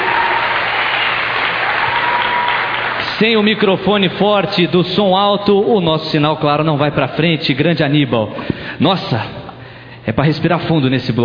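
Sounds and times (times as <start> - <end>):
audience applause: 0.0 - 3.2
speech: 3.2 - 9.4, 10.0 - 11.2.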